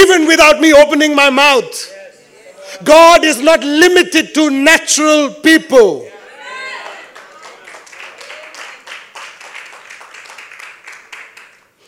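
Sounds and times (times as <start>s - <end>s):
speech: 0.4s - 2.0s, 2.8s - 6.1s
scattered half-hearted clapping from a crowd: 6.7s - 11.8s.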